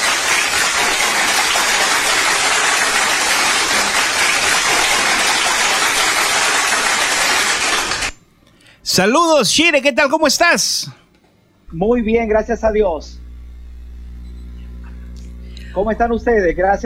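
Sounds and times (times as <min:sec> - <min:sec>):
audience applause: 0:00.0 - 0:08.2
speech: 0:09.0 - 0:11.0, 0:11.7 - 0:13.2, 0:15.8 - 0:16.8.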